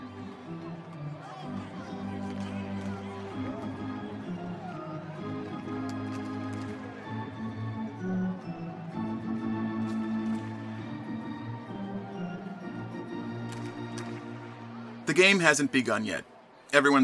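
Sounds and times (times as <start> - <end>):
baseball stadium crowd ambience before game: 0.0 - 17.0
speech: 15.1 - 17.0.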